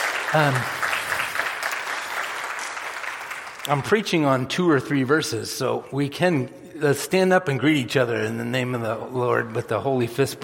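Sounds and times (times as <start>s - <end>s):
audience applause: 0.0s - 4.0s
speech: 0.3s - 0.8s, 3.7s - 10.4s.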